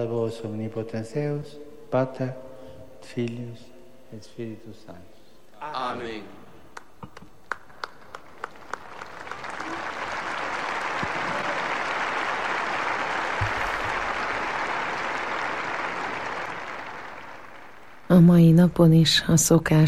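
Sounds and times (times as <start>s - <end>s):
speech: 0.0s - 6.4s, 18.2s - 19.8s
storm of applause from crowd: 6.8s - 18.2s.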